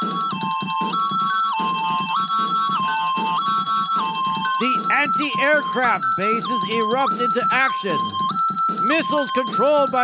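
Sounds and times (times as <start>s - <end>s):
air raid alarm sirens: 0.0s - 10.0s
speech: 4.6s - 8.3s, 8.9s - 10.0s.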